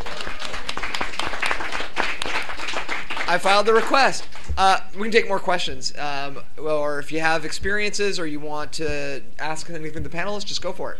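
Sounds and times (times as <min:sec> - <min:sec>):
audience applause: 0:00.0 - 0:04.5
speech: 0:03.3 - 0:10.9.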